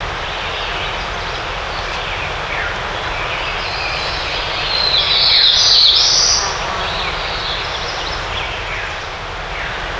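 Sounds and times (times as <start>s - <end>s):
birds: 0.1s - 9.9s.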